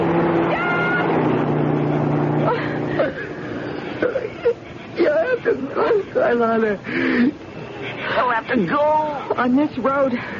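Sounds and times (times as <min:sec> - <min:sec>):
car approaching on road: 0:00.0 - 0:10.3
speech: 0:06.2 - 0:07.4, 0:08.2 - 0:10.3.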